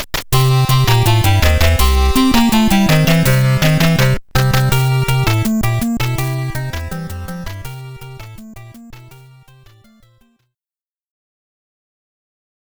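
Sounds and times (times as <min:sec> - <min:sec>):
underground background music: 0:00.4 - 0:10.2.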